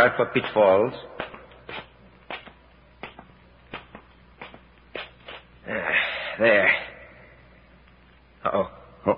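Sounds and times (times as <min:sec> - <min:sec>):
speech: 0:00.0 - 0:01.2, 0:05.7 - 0:06.8, 0:08.4 - 0:09.1
footsteps descending steps in a winding passageway: 0:00.0 - 0:05.5.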